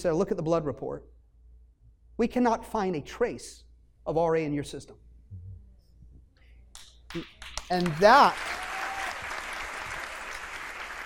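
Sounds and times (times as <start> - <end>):
speech: 0.0 - 1.2, 2.2 - 5.1, 7.1 - 8.6
audience applause: 7.5 - 11.0.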